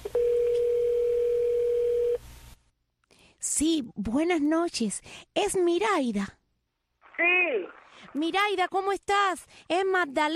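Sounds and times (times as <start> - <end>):
telephone dial tone while placing a surprise call on radio: 0.0 - 2.2
speech: 3.5 - 6.4, 7.2 - 10.3.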